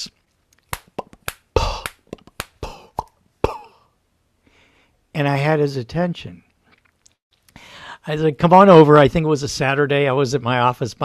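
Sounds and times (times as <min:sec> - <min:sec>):
finger snaps: 0:00.5 - 0:03.2
mouth sounds with lips and tongue: 0:00.7 - 0:03.9
speech: 0:05.2 - 0:06.5, 0:08.0 - 0:11.0.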